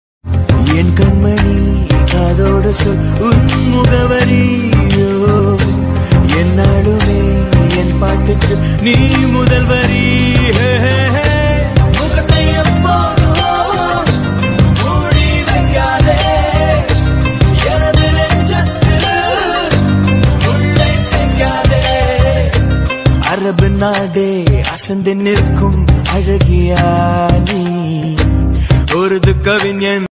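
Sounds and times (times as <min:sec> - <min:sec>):
song background music: 0:00.3 - 0:30.1.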